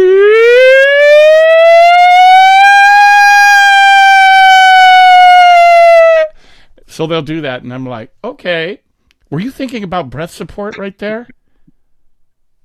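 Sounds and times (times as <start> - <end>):
voice imitating a fire truck siren: 0.0 - 6.3
speech: 7.0 - 11.4.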